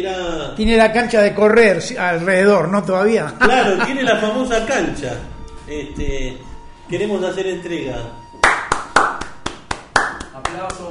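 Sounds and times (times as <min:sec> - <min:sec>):
speech: 0:00.0 - 0:08.2
laughter: 0:03.4 - 0:04.4
hands clapping: 0:08.4 - 0:10.8.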